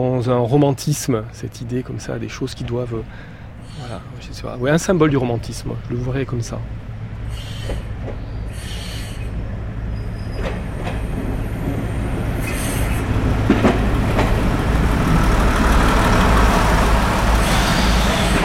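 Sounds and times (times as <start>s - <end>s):
speech: 0.0s - 6.8s
herbicide train rumbling at Canfranc international station: 0.0s - 18.4s
train wheel squeals: 7.3s - 11.2s, 17.3s - 18.4s.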